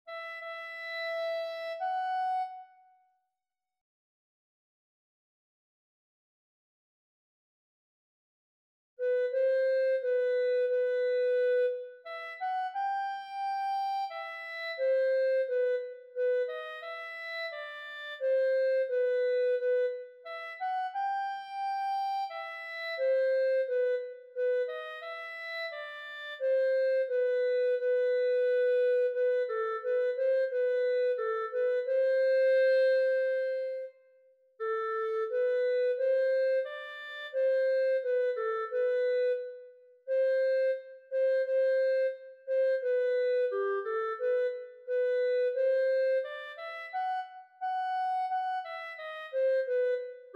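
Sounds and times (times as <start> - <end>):
clarinet: 0.0 - 3.3, 9.0 - 50.3.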